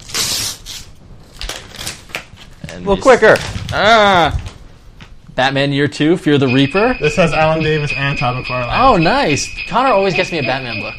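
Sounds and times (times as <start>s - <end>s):
wrapping paper being ripped: 0.0s - 4.6s
speech: 2.7s - 4.4s, 5.4s - 10.9s.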